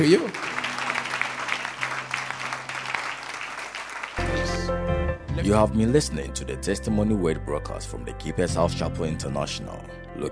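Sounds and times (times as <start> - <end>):
speech: 0.0 - 0.5, 5.4 - 10.3
audience clapping in praise: 0.0 - 4.8.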